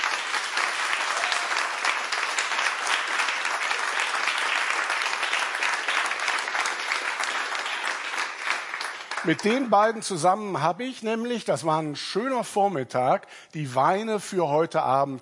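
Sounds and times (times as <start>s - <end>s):
audience applause: 0.0s - 10.1s
speech: 9.2s - 15.2s.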